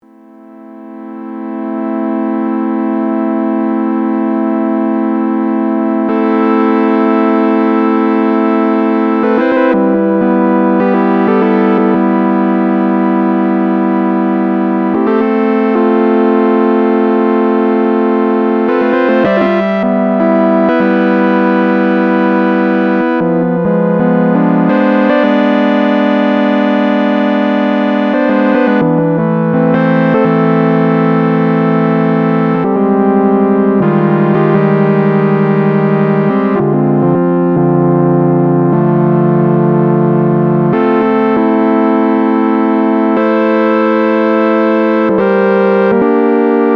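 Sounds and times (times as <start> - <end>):
paraphonic synthesizer: 0.0 - 46.7.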